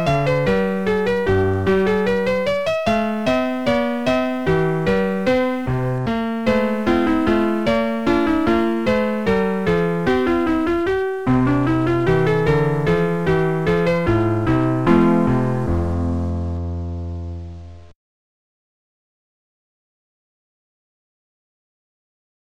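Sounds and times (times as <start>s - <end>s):
minuet: 0.0s - 16.7s.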